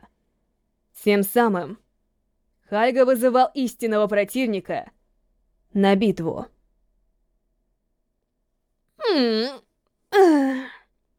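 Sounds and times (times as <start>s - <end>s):
speech: 1.0s - 1.8s, 2.7s - 5.0s, 5.7s - 6.5s, 9.2s - 10.8s
sleepy woman yawning in a wooden Japanese-style house: 9.0s - 10.9s.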